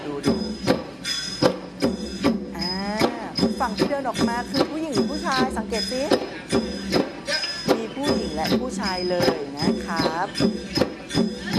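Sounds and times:
speech: 0:00.2 - 0:00.5, 0:04.0 - 0:06.6, 0:08.4 - 0:11.5
Thai thon hand drum being played: 0:02.3 - 0:11.5.

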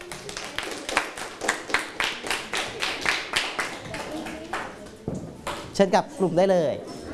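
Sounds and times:
classroom applause: 0:00.0 - 0:04.7
speech: 0:05.8 - 0:06.9.

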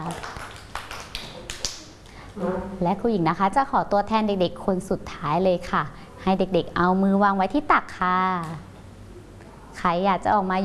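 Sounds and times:
children clapping hands: 0:00.0 - 0:02.0
speech: 0:02.4 - 0:08.7, 0:09.8 - 0:10.6.

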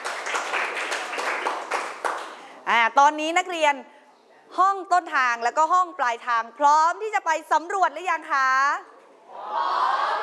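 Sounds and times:
classroom applause: 0:00.0 - 0:02.5
speech: 0:02.9 - 0:08.9, 0:09.5 - 0:10.2.

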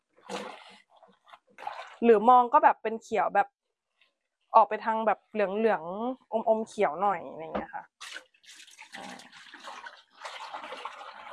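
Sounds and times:
water running and splashing while something is rinsed: 0:00.2 - 0:02.0, 0:07.9 - 0:11.3
speech: 0:02.0 - 0:03.6, 0:04.5 - 0:07.9.

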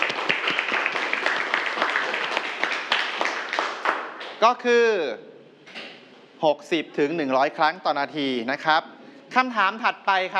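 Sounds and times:
students clapping for a classmate: 0:00.0 - 0:04.6
speech: 0:04.4 - 0:05.3, 0:06.4 - 0:10.3.

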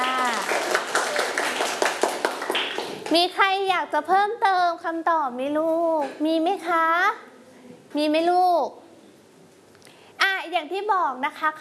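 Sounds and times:
children clapping in a classroom: 0:00.0 - 0:03.2
speech: 0:03.1 - 0:07.3, 0:07.9 - 0:08.8, 0:10.5 - 0:11.5.

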